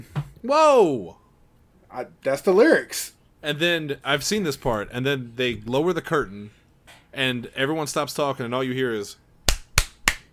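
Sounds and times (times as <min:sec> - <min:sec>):
speech: 0:00.0 - 0:01.2, 0:01.9 - 0:09.2
hand claps: 0:09.5 - 0:10.3.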